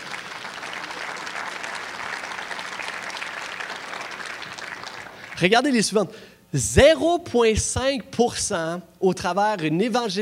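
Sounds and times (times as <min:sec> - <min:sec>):
audience applause: 0:00.0 - 0:05.4
speech: 0:05.4 - 0:10.2.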